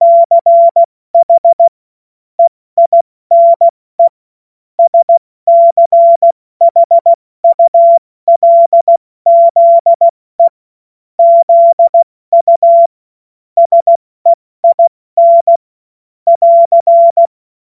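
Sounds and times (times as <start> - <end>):
CW Morse code beeps: 0.0 - 1.7, 2.4 - 4.1, 4.8 - 10.5, 11.2 - 12.9, 13.6 - 15.6, 16.3 - 17.3.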